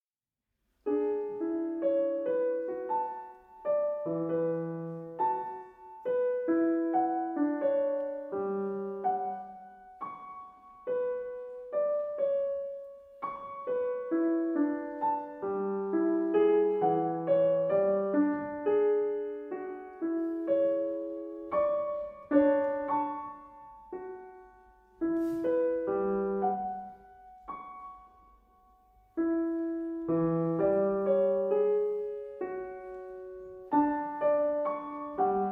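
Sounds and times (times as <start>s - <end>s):
piano music: 0.8s - 35.5s.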